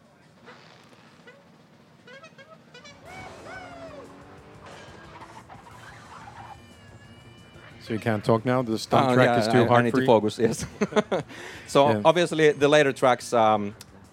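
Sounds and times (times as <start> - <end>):
cars racing in a versus-mode video game race: 0.0 - 14.1
horn-like tones: 1.1 - 8.3
speech: 7.9 - 13.8
laughter: 10.0 - 11.4.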